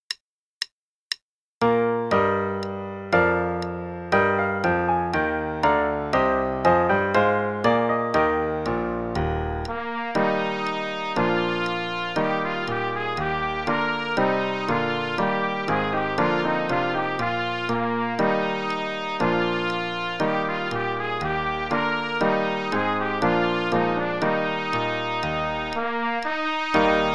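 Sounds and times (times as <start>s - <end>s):
play-along music with both parts: 1.6s - 27.1s.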